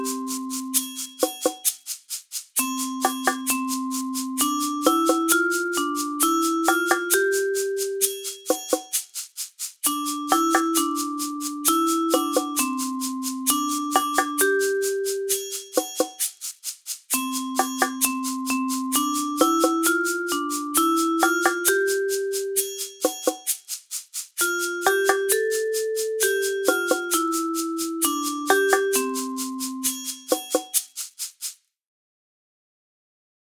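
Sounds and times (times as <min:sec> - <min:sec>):
percussion ensemble playing: 0:00.0 - 0:31.5.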